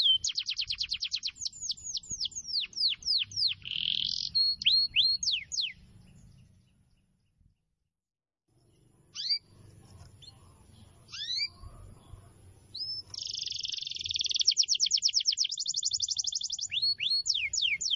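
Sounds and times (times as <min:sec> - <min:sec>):
canary song: 0:00.0 - 0:07.6, 0:08.5 - 0:17.9.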